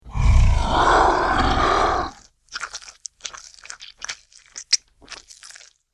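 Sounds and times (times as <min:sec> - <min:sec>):
dragon monster roar: 0:00.0 - 0:02.3.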